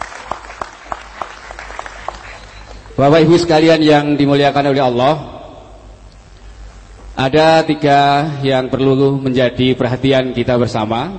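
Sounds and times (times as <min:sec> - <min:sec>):
audience applause at a large community gathering: 0:00.0 - 0:03.0
speech: 0:03.0 - 0:05.3, 0:07.2 - 0:11.1.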